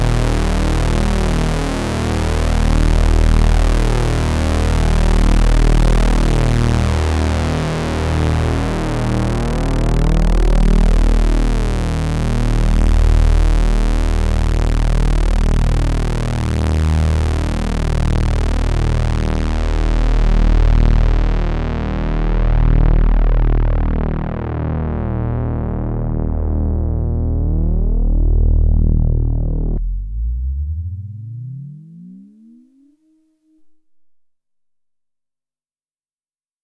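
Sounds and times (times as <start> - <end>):
analog synthesizer with six VCOs and two 24dB filters: 0.0 - 34.4.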